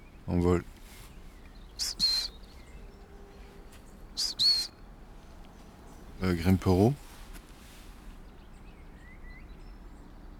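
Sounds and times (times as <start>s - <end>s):
speech: 0.3s - 0.7s, 6.2s - 7.0s
long-tailed tits trilling: 1.6s - 3.0s, 4.2s - 4.8s.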